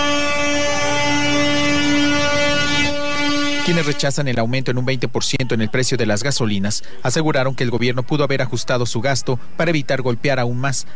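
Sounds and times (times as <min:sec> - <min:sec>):
car horns honking on a toll highway in protest: 0:00.0 - 0:04.4
speech: 0:03.7 - 0:10.9.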